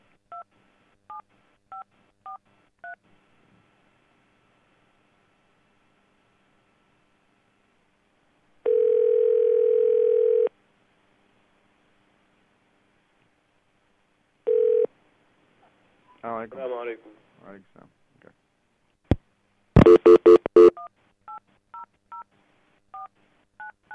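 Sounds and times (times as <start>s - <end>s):
quiet hiss: 0.0s - 23.9s
telephone keypad touch-tones entering an account code: 19.8s - 20.9s.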